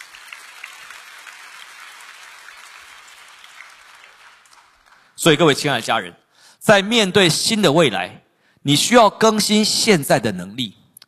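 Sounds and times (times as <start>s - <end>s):
audience clapping hands: 0.0s - 5.6s
speech: 5.2s - 10.8s.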